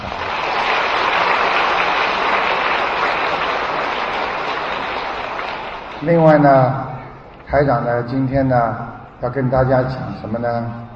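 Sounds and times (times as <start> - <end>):
audience applause: 0.0 - 6.1
speech: 6.0 - 6.9, 7.5 - 10.8.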